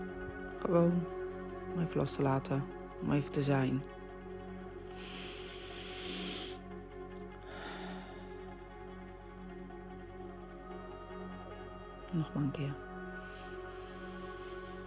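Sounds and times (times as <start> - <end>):
speech: 0.6 - 4.0, 12.1 - 12.9
deep breathing during a guided relaxation exercise: 4.9 - 11.6, 13.1 - 14.8.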